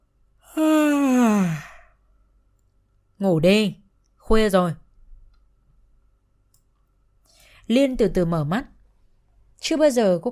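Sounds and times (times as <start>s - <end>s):
long yawn: 0.4s - 2.0s
speech: 3.2s - 4.8s, 7.7s - 8.7s, 9.6s - 10.3s.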